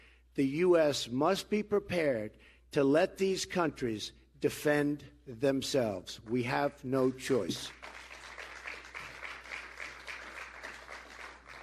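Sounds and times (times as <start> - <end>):
speech: 0.4 - 8.0
small crowd's sparse applause: 7.7 - 11.6.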